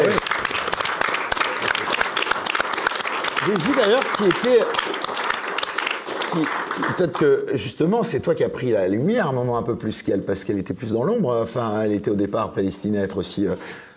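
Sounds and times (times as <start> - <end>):
studio audience applause: 0.0 - 7.7
speech: 3.4 - 4.8, 6.3 - 13.9.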